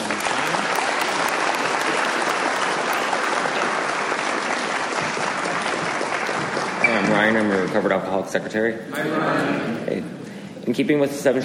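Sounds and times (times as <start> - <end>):
crowd clapping: 0.0 - 8.3
speech: 7.2 - 11.4.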